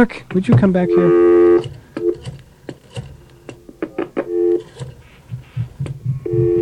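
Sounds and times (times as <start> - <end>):
speech: 0.0 - 1.8
telephone line tones while trying to dial: 0.8 - 2.2, 4.2 - 4.8, 6.2 - 6.6.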